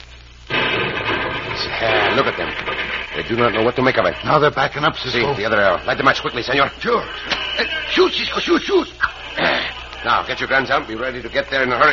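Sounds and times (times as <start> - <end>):
low hiss: 0.0 - 11.9
dynamite explosion: 0.4 - 6.8
speech: 1.8 - 11.9.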